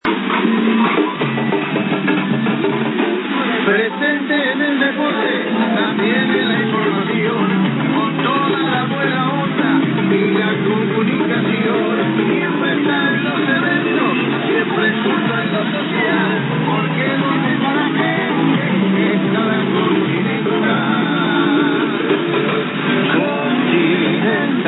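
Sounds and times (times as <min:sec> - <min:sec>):
song: 0:00.0 - 0:24.6.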